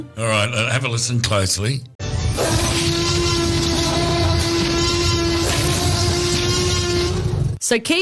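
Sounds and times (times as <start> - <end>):
speech: 0.0 - 2.5, 7.7 - 8.0
movie T-Rex roar blended from animal cries: 2.3 - 7.6.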